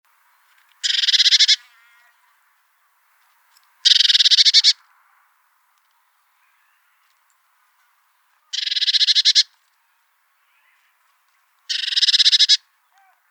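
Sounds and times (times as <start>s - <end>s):
Eurasian blue tit churring: 0.8s - 1.6s, 3.9s - 4.8s, 8.6s - 9.5s, 11.7s - 12.6s.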